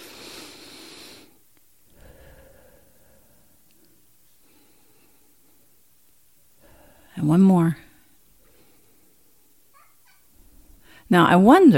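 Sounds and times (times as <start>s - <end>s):
deep breathing during a guided exercise: 0.0s - 5.9s, 6.5s - 7.2s, 7.9s - 9.7s, 10.4s - 11.1s
speech: 7.2s - 7.8s, 11.1s - 11.7s.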